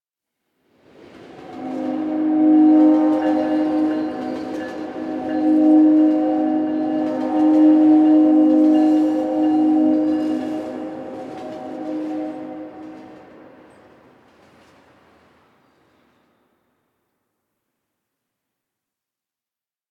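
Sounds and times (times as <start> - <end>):
distant train: 0.7 - 17.0.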